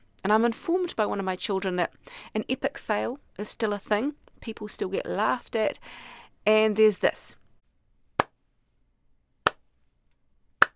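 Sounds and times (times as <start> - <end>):
speech: 0.2 - 7.4
slow hand claps: 9.4 - 9.6, 10.6 - 10.7.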